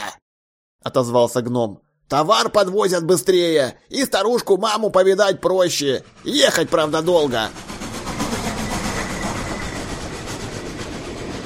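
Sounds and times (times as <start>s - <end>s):
speech: 0.9s - 7.7s
train passing overhead: 2.4s - 11.4s.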